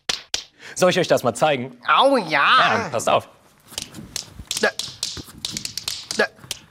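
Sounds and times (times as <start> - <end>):
speech: 0.8 - 3.4
tap dance shoes tapping during tap-dance practice: 3.7 - 6.6.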